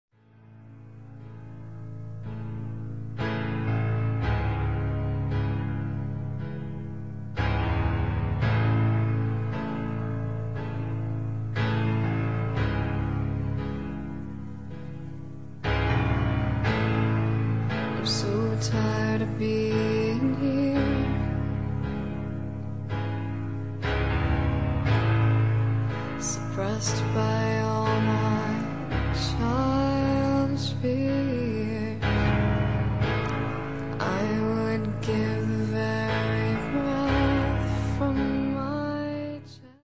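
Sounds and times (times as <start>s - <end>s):
piano: 0.0s - 39.8s
person singing: 17.9s - 21.6s, 26.2s - 32.5s, 33.9s - 39.8s.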